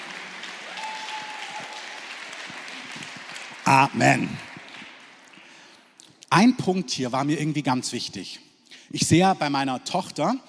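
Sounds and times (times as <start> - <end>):
audience applause: 0.0 - 5.7
speech: 3.7 - 4.5, 6.4 - 10.4.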